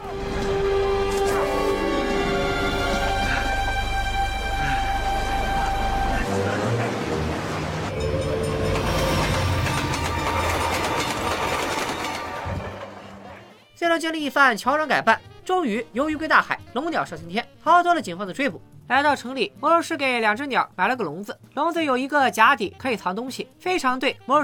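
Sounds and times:
moving train rumbling with rattling clatter and tonal whines: 0:00.0 - 0:13.5
speech: 0:14.0 - 0:24.4.

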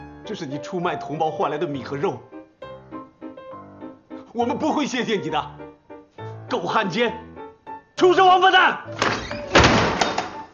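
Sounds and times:
speech: 0:00.3 - 0:02.3, 0:04.4 - 0:05.6, 0:06.5 - 0:07.2, 0:08.0 - 0:09.2
door being shut: 0:08.9 - 0:10.5.

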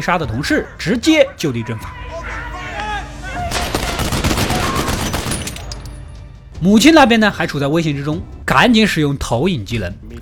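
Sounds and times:
speech: 0:00.0 - 0:02.2, 0:06.6 - 0:10.2
gunshots: 0:03.5 - 0:05.8.

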